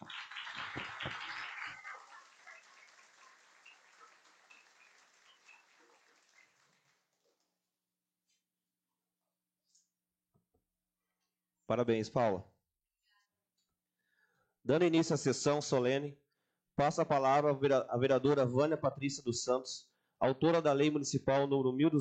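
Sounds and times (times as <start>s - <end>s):
audience applause: 0.0s - 7.2s
speech: 11.7s - 12.5s, 14.7s - 16.2s, 16.8s - 21.9s.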